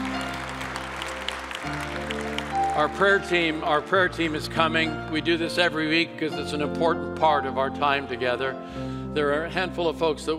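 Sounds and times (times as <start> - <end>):
audience clapping: 0.0 - 4.9
sustained keyboard or organ chords: 0.0 - 10.3
speech: 2.8 - 10.3.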